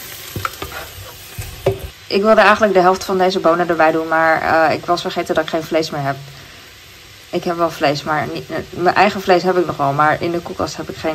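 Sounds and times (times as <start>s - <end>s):
frying pan sizzling as water is added: 0.0s - 11.1s
stirring knocks and scrapes: 0.3s - 1.9s
speech: 2.1s - 6.4s, 7.3s - 11.1s.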